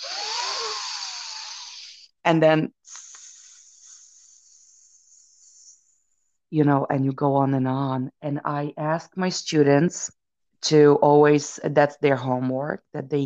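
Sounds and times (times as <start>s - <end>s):
person exhaling on a hissing s: 0.0s - 2.1s, 2.8s - 5.0s
speech: 2.3s - 3.0s, 6.5s - 13.2s.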